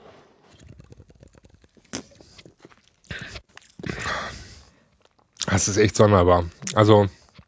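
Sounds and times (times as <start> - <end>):
person sipping mate tea: 0.0 - 5.4
speech: 5.6 - 7.2.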